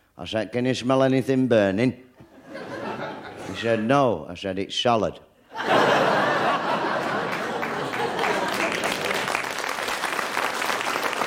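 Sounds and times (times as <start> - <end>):
speech: 0.2 - 2.1, 3.6 - 6.2
laughter: 2.2 - 3.8, 5.5 - 9.4
crowd clapping: 6.1 - 11.2.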